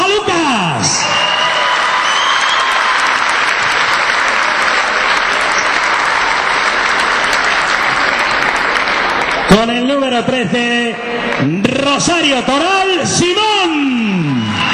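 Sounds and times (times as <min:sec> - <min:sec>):
audience applause: 0:01.1 - 0:09.6, 0:14.2 - 0:14.7
speech: 0:09.6 - 0:14.4.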